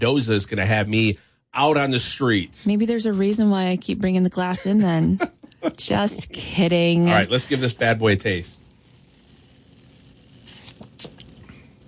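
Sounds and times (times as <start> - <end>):
speech: 0.0 - 8.6
carbonated drink fizzing: 7.4 - 11.8.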